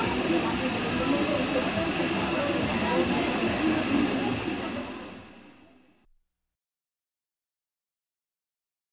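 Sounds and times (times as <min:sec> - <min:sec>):
pub street ambience: 0:00.0 - 0:06.1.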